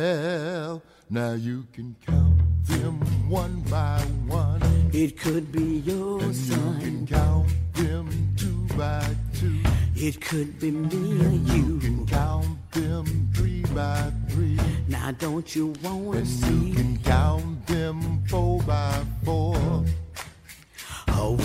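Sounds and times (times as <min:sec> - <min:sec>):
lead singer and backing vocals singing a song: 0:00.0 - 0:20.0, 0:20.8 - 0:21.4
speech: 0:00.0 - 0:20.0
steady beat and bass: 0:02.1 - 0:10.2, 0:10.8 - 0:20.3, 0:21.1 - 0:21.4.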